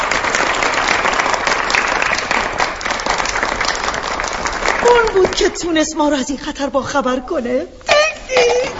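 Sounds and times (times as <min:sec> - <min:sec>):
crowd applause: 0:00.0 - 0:05.4
speech: 0:05.0 - 0:08.5.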